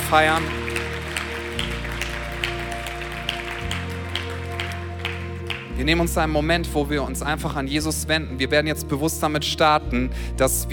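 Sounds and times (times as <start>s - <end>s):
audience applause: 0.0s - 5.8s
speech: 0.1s - 0.7s, 5.8s - 10.7s.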